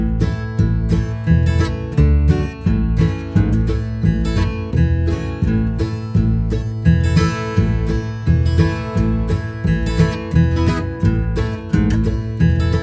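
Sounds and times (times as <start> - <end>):
folk tune: 0.0 - 12.8.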